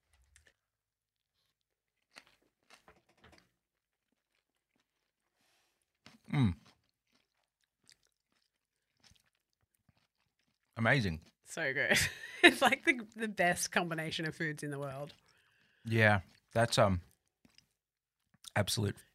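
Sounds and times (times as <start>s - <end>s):
people chewing olives with anchovies: 0.0s - 11.4s, 14.8s - 18.6s
speech: 6.4s - 6.6s, 10.8s - 15.2s, 15.8s - 17.1s, 18.6s - 19.1s.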